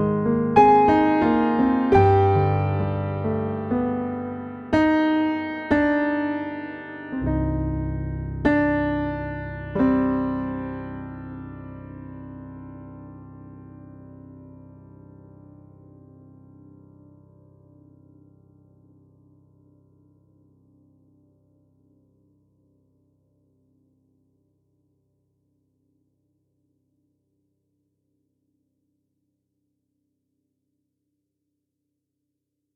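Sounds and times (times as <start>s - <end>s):
piano: 0.0s - 24.7s.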